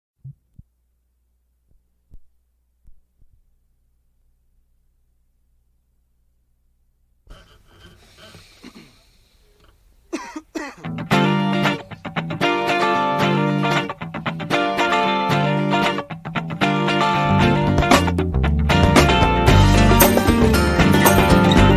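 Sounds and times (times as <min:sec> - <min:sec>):
instrumental music: 0:10.8 - 0:21.7.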